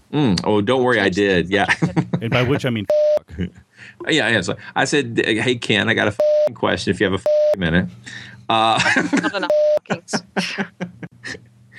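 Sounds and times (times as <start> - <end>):
speech: 0.1 - 11.4
laughter: 1.6 - 3.6, 8.6 - 11.4
censor beep over profanity: 2.9 - 3.2, 6.2 - 6.5, 7.2 - 7.6, 9.5 - 9.8.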